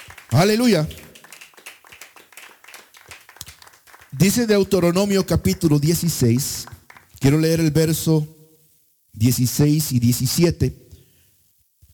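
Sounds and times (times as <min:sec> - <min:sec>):
church congregation clapping during a Spanish-language worship service: 0:00.0 - 0:07.8
speech: 0:00.3 - 0:01.0, 0:04.2 - 0:08.4, 0:09.2 - 0:10.8.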